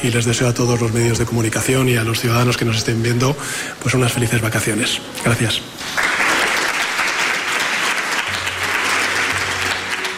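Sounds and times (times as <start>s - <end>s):
speech: 0.0s - 6.0s
ministers applauding: 5.8s - 10.1s.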